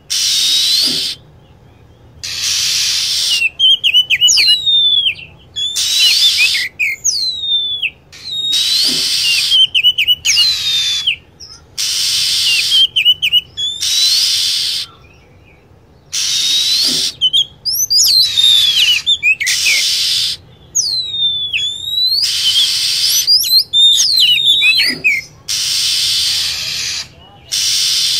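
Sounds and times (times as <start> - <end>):
lovebird shrill chattering: 0.1 - 1.2, 2.2 - 15.1, 16.1 - 28.1.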